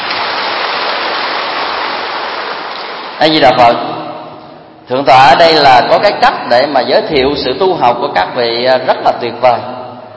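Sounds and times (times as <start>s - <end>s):
audience applause: 0.0s - 3.2s
speech: 3.2s - 3.9s, 4.9s - 9.7s.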